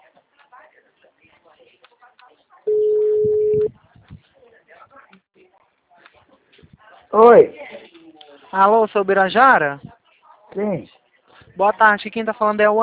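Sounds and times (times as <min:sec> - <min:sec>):
quiet talk: 0:00.0 - 0:08.6, 0:09.8 - 0:11.6
telephone ringing on an outgoing call: 0:02.7 - 0:03.7
speech: 0:07.1 - 0:07.6, 0:08.5 - 0:09.9, 0:10.6 - 0:10.9, 0:11.6 - 0:12.8.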